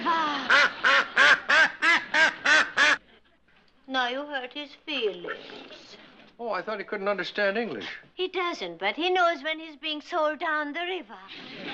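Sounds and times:
duck quacking: 0.5s - 3.0s
speech: 4.1s - 11.7s.

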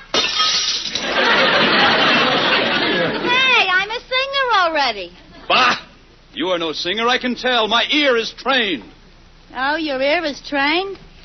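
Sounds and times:
glass breaking: 0.0s - 1.3s
tinkling scattering glass shards: 0.1s - 1.1s
laughter: 0.9s - 3.5s
speech: 4.9s - 5.8s, 6.4s - 11.2s.

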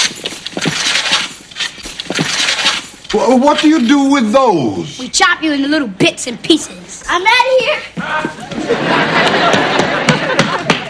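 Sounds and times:
swords being drawn: 0.0s - 3.9s
speech: 3.1s - 9.7s
laughter: 8.0s - 10.8s.

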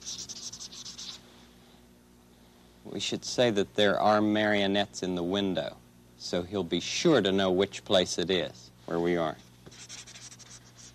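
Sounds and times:
pen scratching while writing a note: 0.0s - 1.2s, 9.7s - 10.9s
speech: 2.8s - 9.4s.

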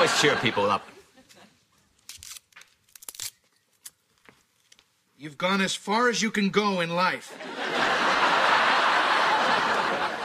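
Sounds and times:
laughter: 0.0s - 1.7s, 7.2s - 10.2s
speech: 0.2s - 1.0s, 5.2s - 8.4s
fortune cookie being cracked open: 2.0s - 4.9s
fortune cookie wrapper crinkling: 2.0s - 4.9s.

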